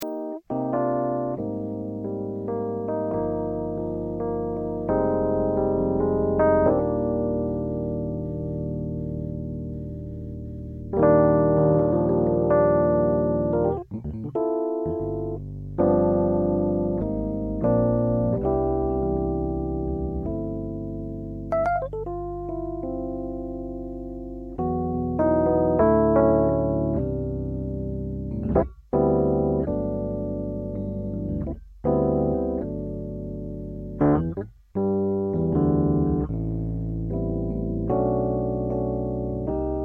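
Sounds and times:
Rhodes Mark 7 electric piano: 0.0s - 39.8s.

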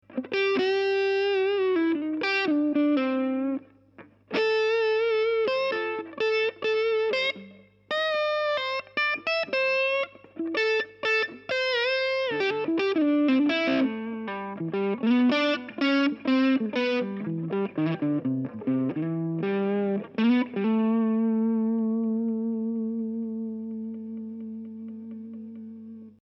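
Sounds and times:
Knaggs electric guitar slightly overdriven on neck pickup: 0.0s - 26.2s.

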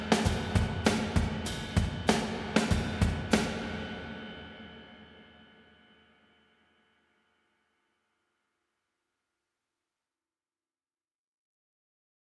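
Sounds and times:
vintage drum kit plate: 0.0s - 3.8s.

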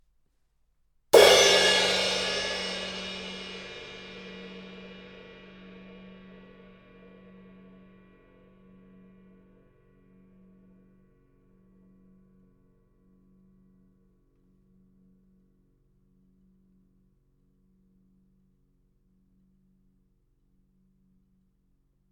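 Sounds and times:
cymbal: 1.2s - 8.6s.

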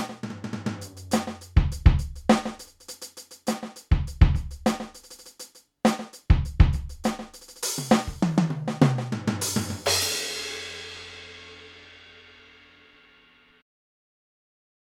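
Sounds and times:
Millenium NonaPad electronic rock drum kit: 0.0s - 11.9s.

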